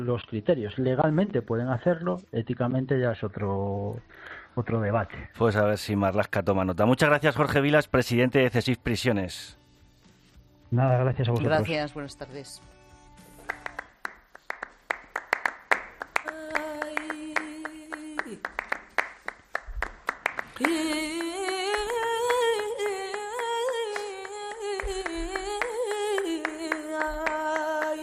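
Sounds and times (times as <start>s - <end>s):
speech: 0.0s - 9.6s, 10.7s - 12.7s, 20.6s - 21.1s
flamenco hand clapping (palmas): 13.3s - 28.0s.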